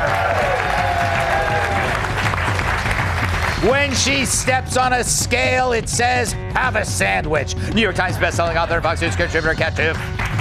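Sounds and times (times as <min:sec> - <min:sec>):
audience applause: 0:00.0 - 0:04.4, 0:10.0 - 0:10.3
speech: 0:03.6 - 0:10.2.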